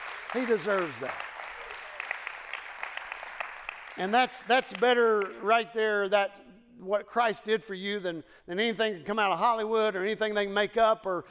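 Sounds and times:
crowd clapping: 0.0s - 5.5s
speech: 0.3s - 1.3s, 4.0s - 11.2s.

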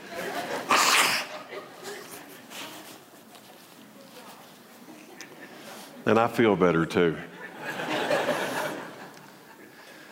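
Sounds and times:
laughter: 0.0s - 2.4s, 7.3s - 10.1s
nose blowing: 0.6s - 1.4s
speech: 6.1s - 7.3s.

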